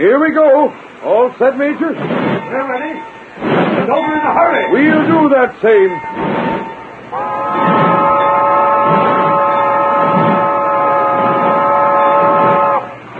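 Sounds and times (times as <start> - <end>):
speech: 0.0 - 7.3
steam train chuffing: 0.0 - 13.1
steam train multi-toned whistle: 5.9 - 13.1.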